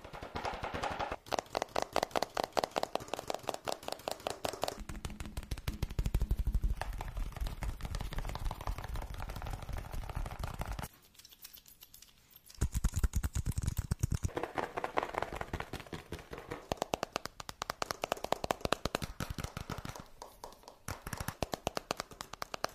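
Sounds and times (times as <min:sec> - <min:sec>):
fast tapping: 0:00.0 - 0:10.9, 0:12.6 - 0:22.7.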